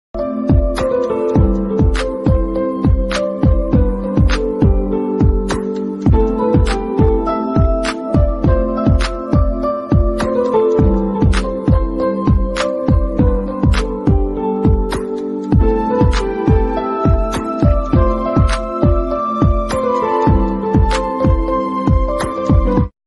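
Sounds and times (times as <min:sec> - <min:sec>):
Tamil background music ringtone: 0:00.2 - 0:22.9.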